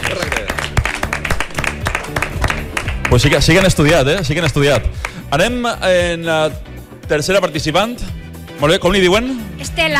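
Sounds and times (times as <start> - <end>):
audience applause for a quiz show contestant: 0.0 - 4.6
speech: 3.1 - 9.9.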